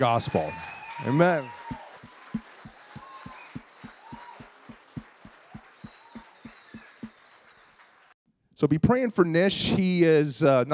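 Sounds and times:
speech: 0:00.0 - 0:02.4, 0:08.6 - 0:10.7
church congregation rhythmic clapping to welcome guests: 0:01.5 - 0:08.0.

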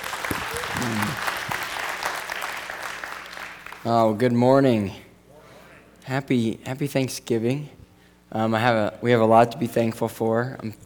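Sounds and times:
audience applause: 0:00.0 - 0:03.8
speech: 0:03.8 - 0:05.0, 0:06.1 - 0:10.8.

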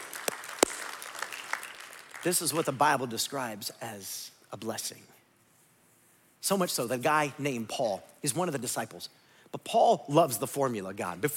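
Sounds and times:
roomful of people applauding: 0:00.0 - 0:02.6
speech: 0:02.2 - 0:05.1, 0:06.4 - 0:11.3.

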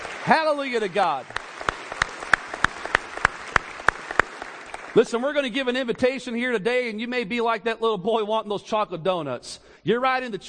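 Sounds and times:
audience clapping hands in praise: 0:00.0 - 0:05.6
speech: 0:00.3 - 0:01.4, 0:05.0 - 0:10.4.

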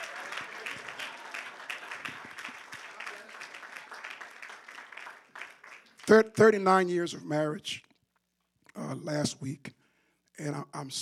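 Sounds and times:
audience hand clapping: 0:00.0 - 0:06.4
speech: 0:06.1 - 0:07.8, 0:08.9 - 0:09.8, 0:10.4 - 0:11.0.

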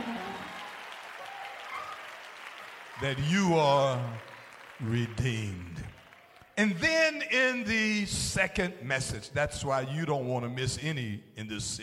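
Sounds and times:
church congregation clapping hands in praise: 0:00.0 - 0:06.9
speech: 0:03.0 - 0:06.0, 0:06.6 - 0:11.8.

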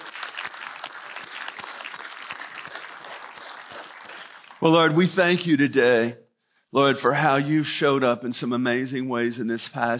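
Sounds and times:
crowd applauding: 0:00.0 - 0:05.4
speech: 0:04.6 - 0:09.9.

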